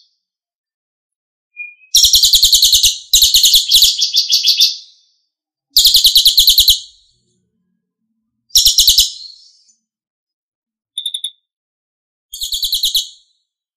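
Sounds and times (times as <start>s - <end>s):
Lesser Racket-tailed Drongo song in tembakan style: 1.5s - 7.4s, 8.4s - 9.9s, 10.9s - 11.5s, 12.3s - 13.6s.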